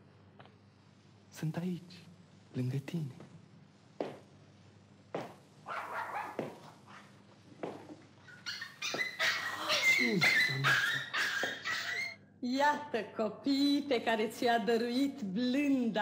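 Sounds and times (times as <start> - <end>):
speech: 1.3 - 3.3, 12.5 - 16.0
two puppies whimpering and yipping: 8.3 - 12.2.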